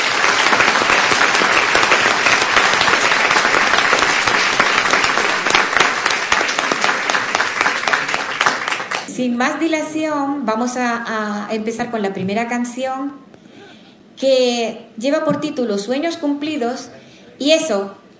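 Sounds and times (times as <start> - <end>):
audience applause: 0.0 - 9.1
speech: 9.2 - 13.3, 14.2 - 18.1.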